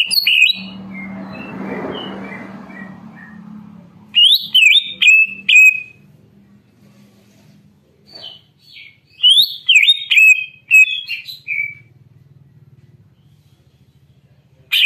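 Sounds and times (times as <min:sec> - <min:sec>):
leafbird song with sharp varied whistled phrases: 0:00.0 - 0:03.4, 0:04.1 - 0:06.0, 0:08.1 - 0:11.9.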